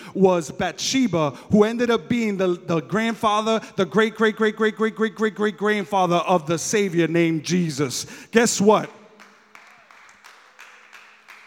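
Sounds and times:
speech: 0.1s - 9.0s
scattered clapping from part of an audience: 9.2s - 11.4s.

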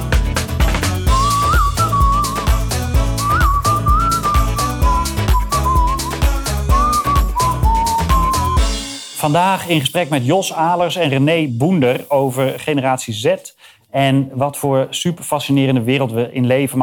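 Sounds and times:
whistled tune: 1.1s - 9.0s
speech: 9.3s - 16.8s.

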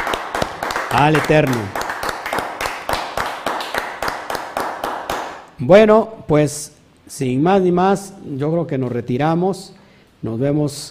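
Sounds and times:
applause: 0.0s - 5.5s
speech: 0.9s - 1.8s, 5.6s - 10.9s.

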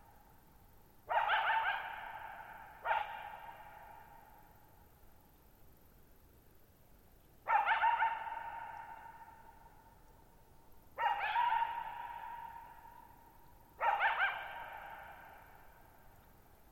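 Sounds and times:
coyote barking: 1.1s - 4.3s, 7.5s - 9.4s, 11.0s - 13.2s, 13.8s - 15.6s.

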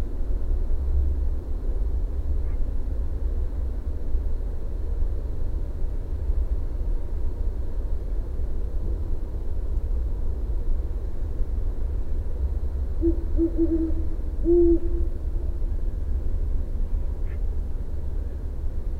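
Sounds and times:
steady low-pitched mechanical rumble: 0.0s - 18.9s
great horned owl hooting: 13.0s - 15.5s.

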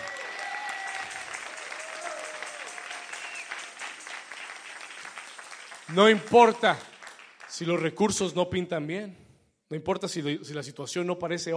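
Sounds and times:
loud audience applause: 0.0s - 8.0s
speech: 5.9s - 6.9s, 7.5s - 11.5s.

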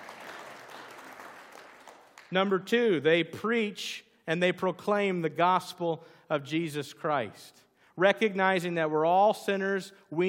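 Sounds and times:
audience clapping: 0.0s - 2.5s
speech: 2.3s - 10.2s.

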